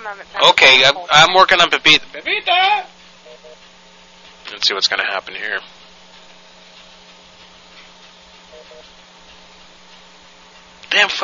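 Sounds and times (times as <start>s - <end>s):
clothes dryer running: 0.0s - 11.2s
speech: 0.1s - 2.9s, 4.4s - 5.8s, 10.9s - 11.2s.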